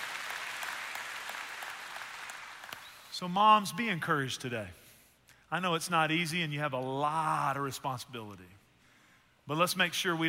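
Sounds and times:
audience applause: 0:00.0 - 0:03.0
speech: 0:03.2 - 0:04.8, 0:05.5 - 0:08.6, 0:09.5 - 0:10.2.

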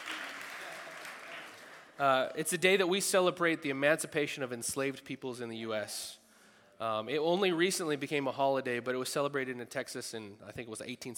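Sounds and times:
audience applause: 0:00.0 - 0:02.0
speech: 0:02.0 - 0:06.2, 0:06.8 - 0:11.1.

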